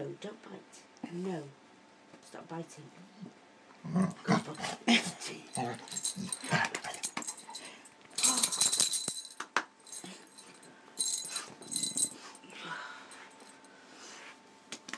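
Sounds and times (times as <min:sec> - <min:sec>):
speech: 0:00.2 - 0:01.6, 0:02.4 - 0:05.9
parrot bells on dog collar jingling: 0:05.4 - 0:13.7.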